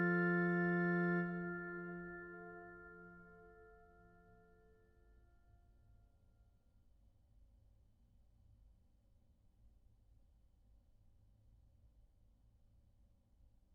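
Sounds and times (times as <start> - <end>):
organ fugue in F: 0.0 - 3.7.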